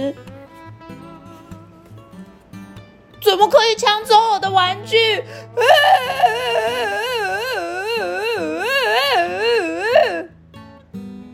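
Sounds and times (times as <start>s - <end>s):
speech: 0.0s - 0.3s, 3.2s - 7.1s
soft music: 0.0s - 10.2s
voice performing a little black bear cub crying loudly: 4.8s - 10.3s.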